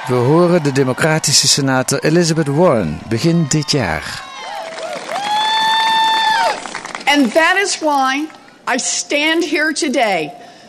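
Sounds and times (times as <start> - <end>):
enthusiastic supporters cheering at rally: 0.0 - 8.5
speech: 0.1 - 4.3, 7.1 - 10.5.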